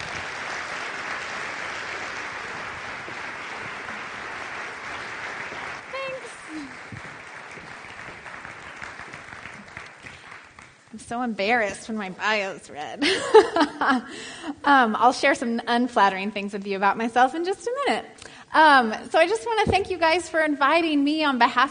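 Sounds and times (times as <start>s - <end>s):
audience applause welcoming a speaker at Commonway Church: 0.0s - 11.0s
speech: 11.1s - 21.7s.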